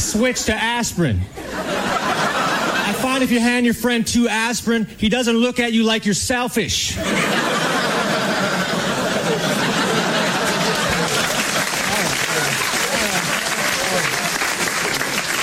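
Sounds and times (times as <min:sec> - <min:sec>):
speech: 0:00.2 - 0:02.2, 0:02.9 - 0:07.4
laughter: 0:01.3 - 0:03.5, 0:07.0 - 0:15.4
audience clapping: 0:09.2 - 0:15.4.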